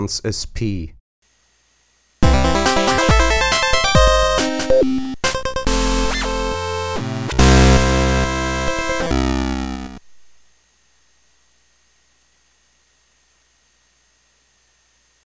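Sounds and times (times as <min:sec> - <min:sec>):
Game Boy nanoloop chiptune music: 0:02.2 - 0:10.0.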